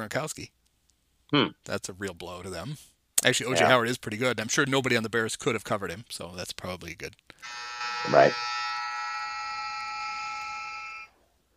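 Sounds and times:
speech: 0.0 - 0.6, 1.3 - 8.6
clothes dryer end-of-cycle buzzer: 7.5 - 11.1.

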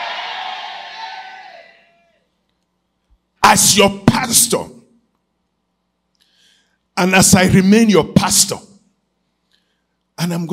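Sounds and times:
audience shouting amen: 0.0 - 2.0
speech: 3.5 - 4.8, 7.0 - 8.7, 10.2 - 10.5.

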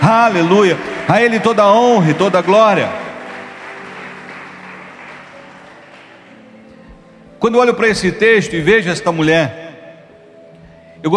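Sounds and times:
audience clapping: 0.0 - 6.8
speech: 0.2 - 3.0, 7.4 - 9.6.

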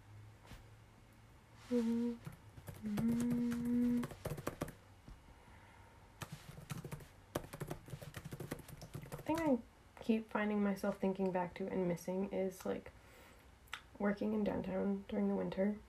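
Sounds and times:
speech: 1.7 - 4.4, 9.4 - 13.0, 14.0 - 15.8
typing on a computer keyboard: 2.2 - 4.8, 6.2 - 9.6.

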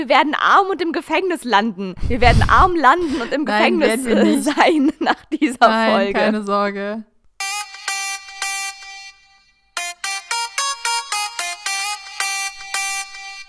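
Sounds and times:
speech: 0.0 - 7.1
laughter: 3.0 - 5.2
alarm clock ringtone melody: 7.4 - 13.4.

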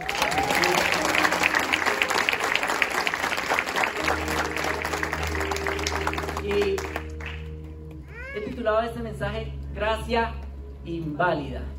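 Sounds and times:
loud audience applause: 0.0 - 7.6
speech: 8.7 - 11.7.

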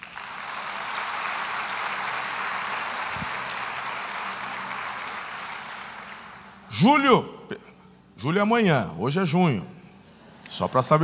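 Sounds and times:
audience applause: 0.0 - 6.7
speech: 6.8 - 7.3, 8.2 - 9.8, 10.6 - 11.0.

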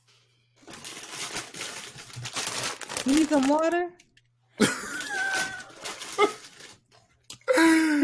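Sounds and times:
speech: 3.0 - 4.0, 4.6 - 4.9
person choking and coughing on a chip: 4.6 - 6.4.

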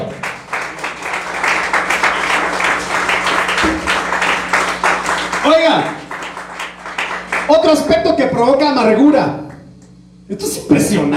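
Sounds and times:
audience applauding: 0.0 - 7.8
speech: 5.5 - 6.0, 7.6 - 9.4, 10.3 - 11.1.

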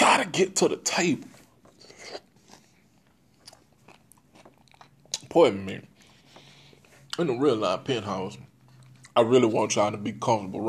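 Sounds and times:
speech: 0.2 - 1.4, 5.3 - 5.9, 7.2 - 8.5, 9.2 - 10.6
chewing frozen fruit: 1.3 - 7.2, 8.4 - 9.4.

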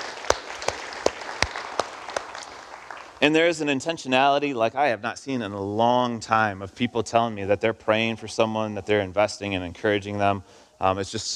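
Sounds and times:
audience applause: 0.0 - 3.6
speech: 3.2 - 11.3.

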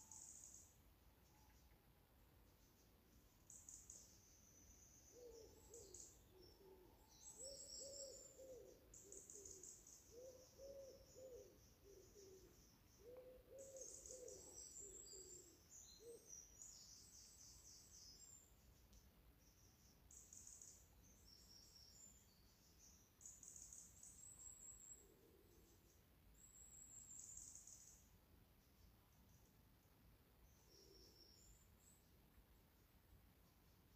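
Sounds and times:
background hiss: 0.0 - 33.9
small birds chirping: 0.0 - 33.9
owl hooting: 5.1 - 16.3.

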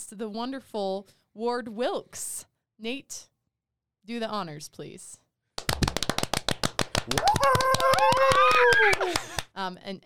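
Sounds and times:
speech: 0.1 - 3.3, 4.0 - 5.2, 7.1 - 10.0
applause sound effect: 5.6 - 9.5.

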